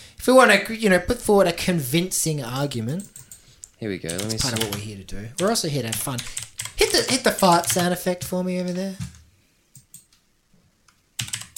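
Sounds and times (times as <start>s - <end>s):
speech: 0.2s - 3.2s, 3.8s - 9.1s
typing on a computer keyboard: 4.1s - 4.8s, 5.4s - 8.4s, 11.2s - 11.5s.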